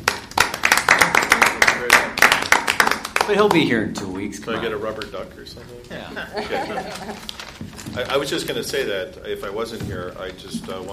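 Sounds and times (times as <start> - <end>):
round of applause: 0.0 - 3.7
speech: 3.3 - 10.9
laughter: 5.9 - 7.3.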